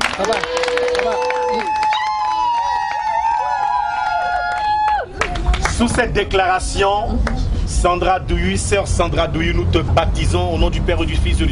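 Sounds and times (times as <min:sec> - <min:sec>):
hands clapping: 0:00.0 - 0:02.3, 0:04.5 - 0:06.1
audience cheering: 0:00.0 - 0:06.0
speech: 0:00.2 - 0:01.2, 0:05.8 - 0:11.5.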